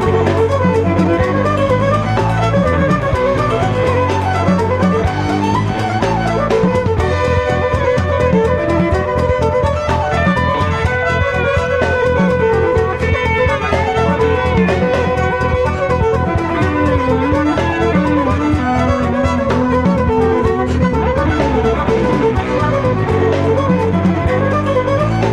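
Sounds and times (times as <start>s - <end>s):
Celtic rock reels: 0.0s - 25.3s.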